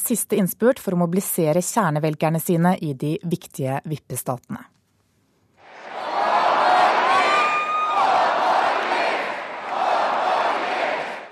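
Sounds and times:
speech: 0:00.1 - 0:04.8
rally crowd chanting and cheering: 0:05.6 - 0:11.2
high whoop: 0:05.8 - 0:08.4.

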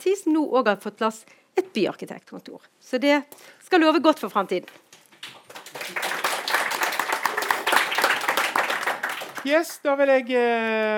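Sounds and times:
speech: 0:00.0 - 0:05.4, 0:09.4 - 0:10.9
audience applause: 0:05.4 - 0:09.6.

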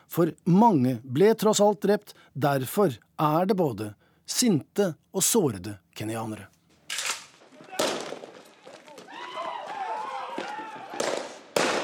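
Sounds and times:
speech: 0:00.2 - 0:06.6
police tear gas launchers firing at a crowd in Kisumu, Kenya: 0:06.9 - 0:08.5, 0:11.0 - 0:11.8
crowd shouting in Kisumu, Kenya: 0:07.5 - 0:11.4.

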